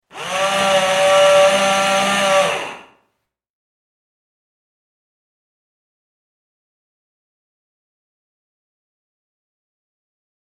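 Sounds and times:
electric screwdriver: 0:00.1 - 0:03.0.

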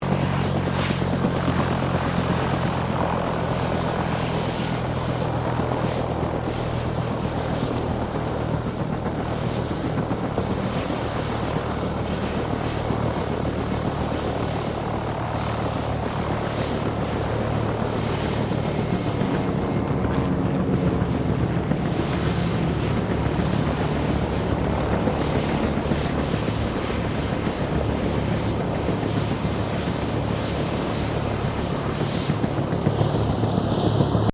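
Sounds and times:
Bell UH1 Iroquois helicopter landing: 0:00.0 - 0:34.3.

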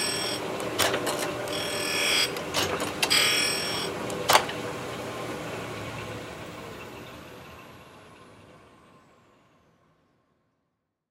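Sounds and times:
industrial surface grinder running on and off: 0:00.0 - 0:06.2.

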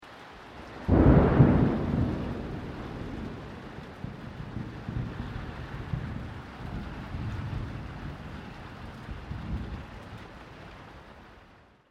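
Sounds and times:
rain: 0:00.0 - 0:11.8
mid-distance thunder: 0:00.8 - 0:09.9.

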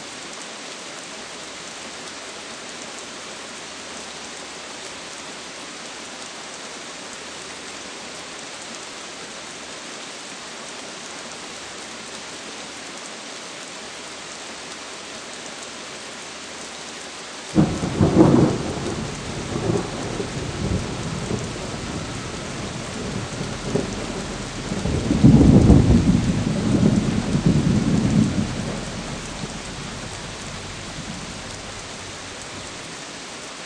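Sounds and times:
medium rainfall in a thunderstorm: 0:00.0 - 0:33.6
distant thunder roll: 0:17.6 - 0:32.8.

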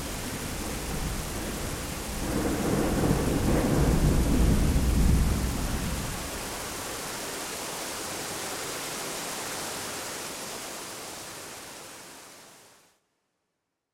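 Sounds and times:
rain: 0:00.0 - 0:13.0
thunder: 0:00.5 - 0:06.3.

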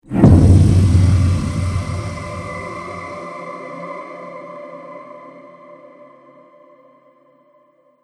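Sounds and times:
alien horror trailer hit: 0:00.1 - 0:03.2.

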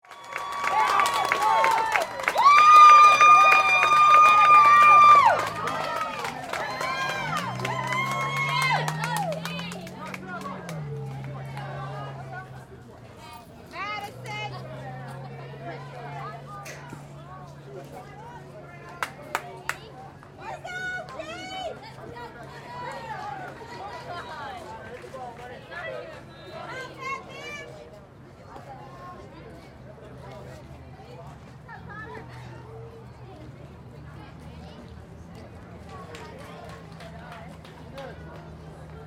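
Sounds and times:
Little League baseball game crowd cheering: 0:00.0 - 0:12.8, 0:13.7 - 0:27.7.

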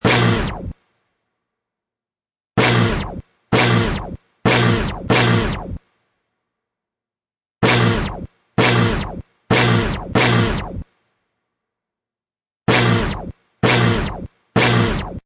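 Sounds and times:
DJ turntable scratch hits: 0:00.0 - 0:00.8, 0:02.6 - 0:05.8, 0:07.6 - 0:10.8, 0:12.7 - 0:15.2.

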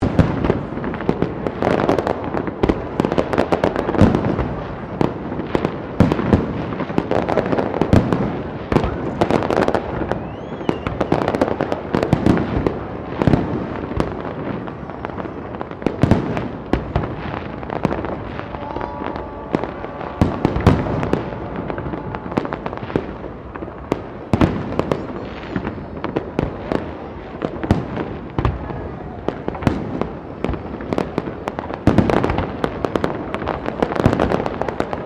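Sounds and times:
New Year's Eve crowd in Melbourne: 0:00.0 - 0:35.0
New Year's Eve fireworks in Melbourne: 0:00.0 - 0:35.0.

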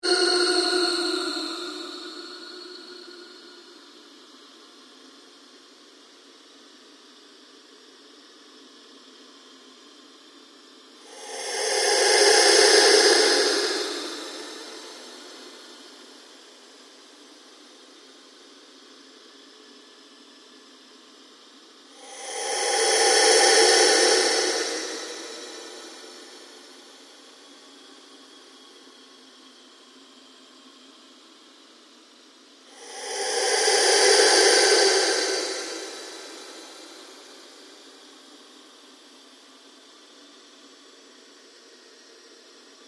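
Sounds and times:
ambient drone with slow sweep: 0:00.0 - 0:04.3, 0:10.9 - 0:18.6, 0:21.8 - 0:28.6, 0:32.6 - 0:38.8.

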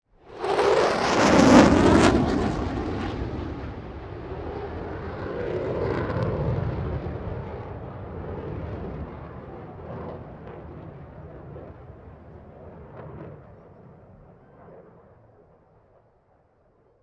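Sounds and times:
B1 airplane flying by fast: 0:00.2 - 0:13.6.

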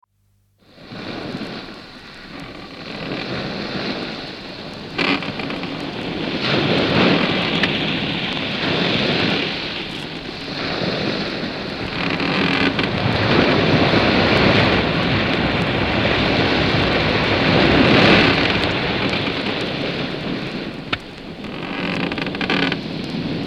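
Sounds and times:
heavy waves: 0:00.6 - 0:23.4
sailing ship creaking: 0:01.0 - 0:23.4.

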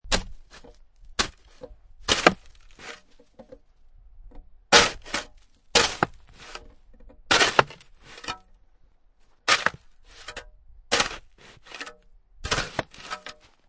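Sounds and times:
shovel grating on snow or dirt: 0:00.1 - 0:03.2, 0:04.7 - 0:06.7, 0:07.3 - 0:08.4, 0:09.5 - 0:13.6.

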